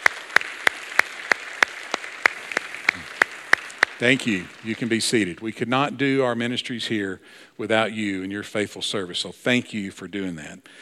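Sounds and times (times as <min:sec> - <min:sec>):
audience applause: 0:00.0 - 0:05.4
speech: 0:04.0 - 0:10.8.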